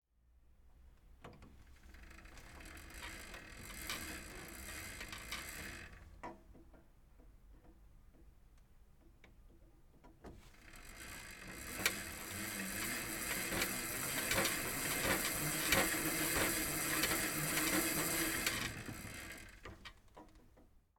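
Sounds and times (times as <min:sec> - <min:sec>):
home gym cycling machine: 0:01.7 - 0:06.3, 0:10.4 - 0:20.3.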